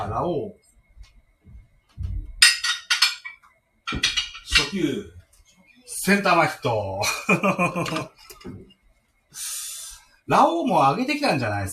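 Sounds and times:
speech: 0.1 - 0.6, 3.9 - 5.2, 5.9 - 8.7, 10.3 - 11.7
dishes clinking and clattering while being washed: 2.4 - 4.8
laughter: 7.0 - 8.2.

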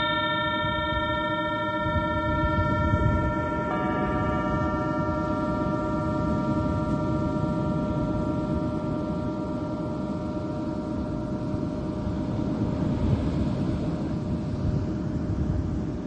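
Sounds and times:
singing bowl ringing: 0.0 - 15.9.

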